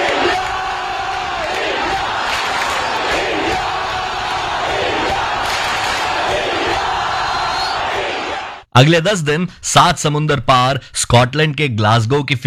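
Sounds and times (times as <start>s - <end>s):
crowd chanting: 0.0s - 8.7s
speech: 8.8s - 12.4s.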